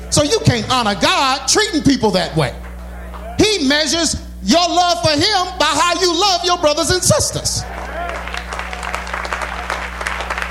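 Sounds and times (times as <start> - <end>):
low hum: 0.0 - 10.4
speech: 0.2 - 2.6, 3.4 - 7.8
audience clapping: 2.5 - 3.3, 7.6 - 10.4.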